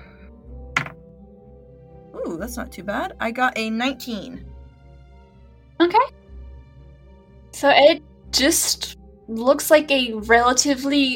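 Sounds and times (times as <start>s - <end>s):
dice tumbling onto a tabletop: 0.8s - 1.0s
speech: 2.2s - 4.5s, 7.6s - 11.1s.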